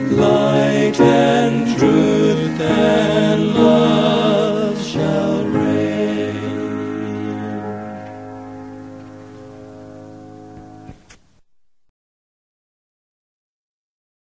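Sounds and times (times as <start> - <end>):
hymn: 0.0 - 11.0.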